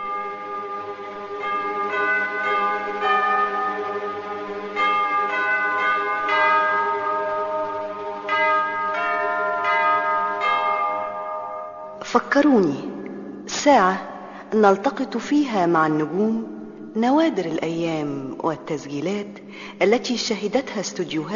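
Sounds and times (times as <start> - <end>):
bell tolling: 0.0 - 15.0
speech: 12.1 - 12.9, 13.6 - 21.3.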